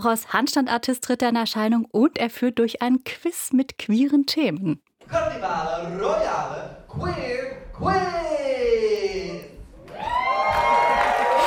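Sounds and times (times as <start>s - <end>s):
speech: 0.0s - 8.8s
enthusiastic audience cheering: 9.8s - 11.4s.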